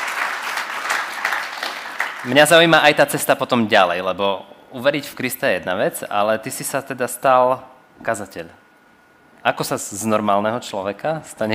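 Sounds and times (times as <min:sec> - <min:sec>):
audience applause: 0:00.0 - 0:02.4
speech: 0:02.2 - 0:08.6, 0:09.4 - 0:11.5.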